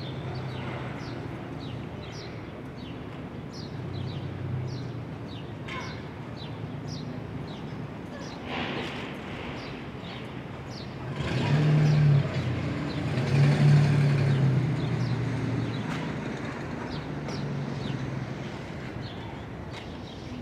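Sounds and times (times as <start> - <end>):
traffic rumble heard from a Brooklyn roof: 0.0 - 20.3
vehicle passing: 11.0 - 19.1.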